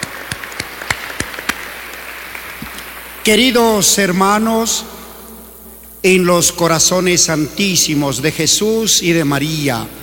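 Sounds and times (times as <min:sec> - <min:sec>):
audience applause: 0:00.0 - 0:03.2
speech: 0:03.2 - 0:05.0, 0:06.0 - 0:10.0.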